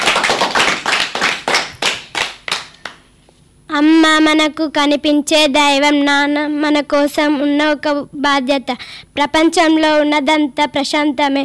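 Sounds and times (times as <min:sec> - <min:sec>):
rhythmic applause at a school program: 0:00.0 - 0:03.0
speech: 0:03.8 - 0:11.4.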